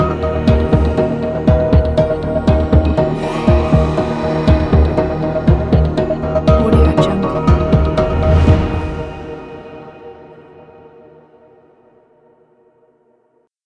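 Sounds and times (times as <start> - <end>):
quiz show suspense timer music: 0.0 - 10.0.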